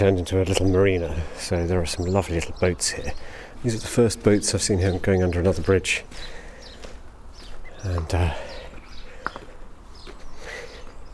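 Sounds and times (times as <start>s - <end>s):
speech: 0.0s - 6.4s, 7.8s - 8.5s
house sparrows chirping around buildings by a canal marina at dawn: 0.0s - 11.1s
soft footsteps: 3.2s - 11.0s.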